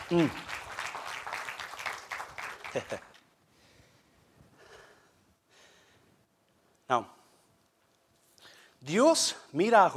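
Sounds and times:
audience applauding: 0:00.0 - 0:03.2
speech: 0:00.1 - 0:00.6, 0:02.8 - 0:03.1, 0:06.9 - 0:07.2, 0:08.8 - 0:09.9
laughter: 0:02.6 - 0:03.2.

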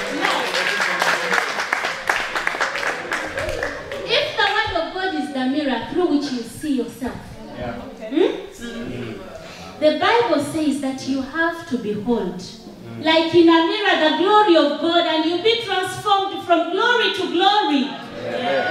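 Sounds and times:
crowd clapping: 0:00.0 - 0:04.8
people talking and cheering: 0:00.0 - 0:11.1, 0:12.6 - 0:18.7
speech: 0:09.8 - 0:18.7.

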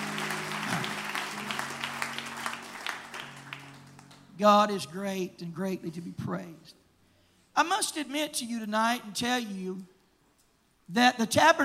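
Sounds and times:
audience clapping: 0:00.0 - 0:04.4
speech: 0:04.4 - 0:06.8, 0:07.6 - 0:09.9, 0:10.9 - 0:11.6.

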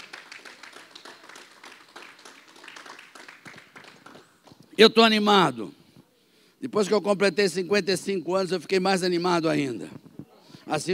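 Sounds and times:
audience clapping: 0:00.0 - 0:04.8
speech: 0:04.8 - 0:05.8, 0:06.6 - 0:10.0, 0:10.7 - 0:10.9.

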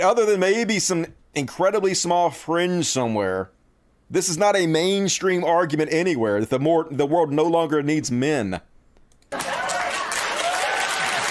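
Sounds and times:
speech: 0:00.0 - 0:08.7
audience applause: 0:09.3 - 0:11.2.

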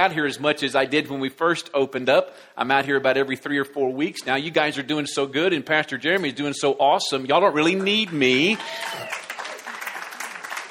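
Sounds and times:
speech: 0:00.0 - 0:09.2
audience clapping: 0:07.6 - 0:10.6.

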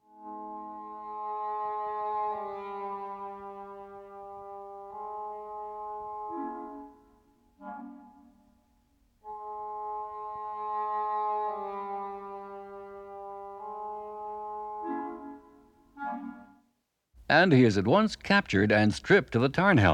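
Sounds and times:
orchestral music with dark low brass chords depicting transformation into toad: 0:00.0 - 0:08.2, 0:09.2 - 0:16.5
speech: 0:17.3 - 0:19.9.

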